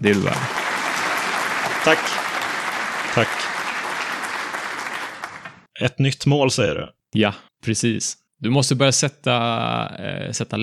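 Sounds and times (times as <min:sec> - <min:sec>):
speech: 0:00.0 - 0:00.6, 0:01.8 - 0:02.3, 0:03.2 - 0:03.5, 0:05.8 - 0:10.6
applause: 0:00.0 - 0:05.7.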